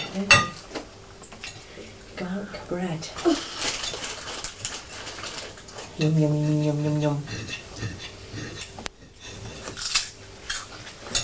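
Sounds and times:
speech: 0.2 - 0.5, 2.4 - 3.7, 6.0 - 8.0
person crunching crisps: 3.2 - 6.0, 9.7 - 10.9.

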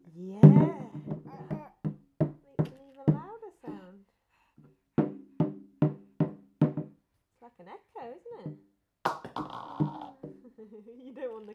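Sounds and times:
child vocal sound: 0.4 - 1.8
child banging on a drum: 0.4 - 3.8, 5.0 - 7.0, 8.4 - 10.4.

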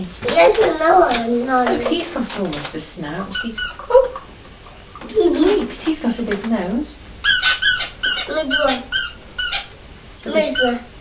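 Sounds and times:
speech: 0.0 - 4.1, 5.1 - 7.6, 8.3 - 9.0, 10.3 - 10.9
squeaky toy being squeezed: 3.3 - 3.8, 7.2 - 9.7, 10.4 - 10.8.

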